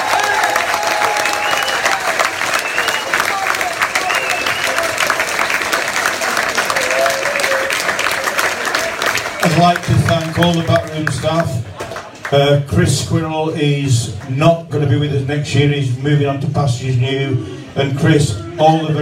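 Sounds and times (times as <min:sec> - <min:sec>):
crowd applause: 0:00.0 - 0:12.5
speech: 0:09.6 - 0:11.6, 0:12.3 - 0:19.0.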